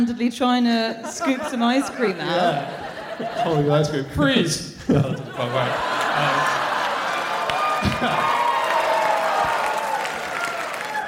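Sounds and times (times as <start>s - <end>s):
speech: 0.0s - 6.6s, 7.8s - 8.4s
laughter: 0.8s - 9.8s
scattered audience applause: 5.4s - 11.0s.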